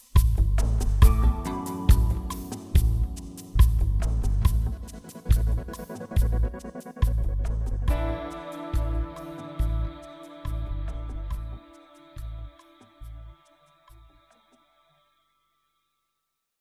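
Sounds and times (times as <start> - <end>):
tudor ambience: 0.2 - 13.4.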